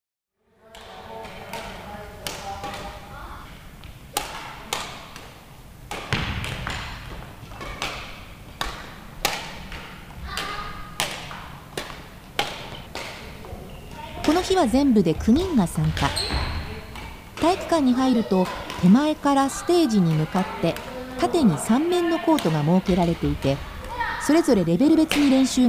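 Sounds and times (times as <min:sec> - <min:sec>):
badminton rackets striking shuttlecocks in a school gymnasium: 0:00.7 - 0:25.6
children's voices murmuring: 0:01.0 - 0:03.7, 0:10.0 - 0:11.7, 0:12.4 - 0:25.6
footsteps squeaking and thudding: 0:12.4 - 0:16.9
speech: 0:14.4 - 0:16.5, 0:17.4 - 0:25.6.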